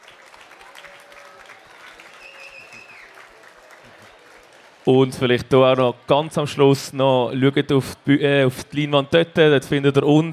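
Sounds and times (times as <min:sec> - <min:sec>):
applause: 0:00.0 - 0:06.6
speech: 0:04.8 - 0:10.3.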